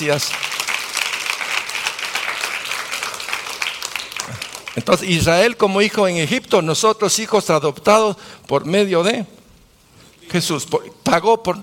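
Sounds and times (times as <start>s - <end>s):
speech: 0.0s - 0.5s, 4.8s - 9.4s, 10.3s - 11.6s
audience applause: 0.0s - 5.0s.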